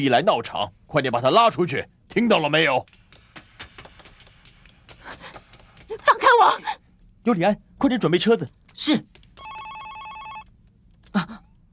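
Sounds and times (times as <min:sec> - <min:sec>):
speech: 0:00.0 - 0:03.0, 0:06.0 - 0:09.1
telephone ringing: 0:09.4 - 0:10.5.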